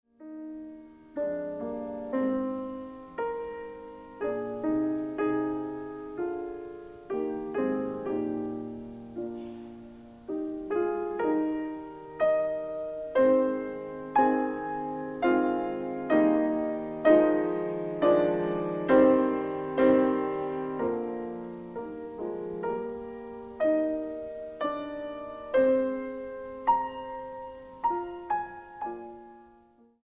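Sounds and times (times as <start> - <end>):
piano bagatelle in E flat major: 0.1 - 30.0.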